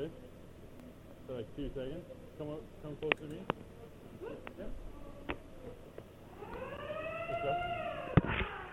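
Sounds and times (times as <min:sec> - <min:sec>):
speech: 0:01.3 - 0:04.9, 0:07.3 - 0:07.9
lunk alarm siren: 0:06.3 - 0:08.7.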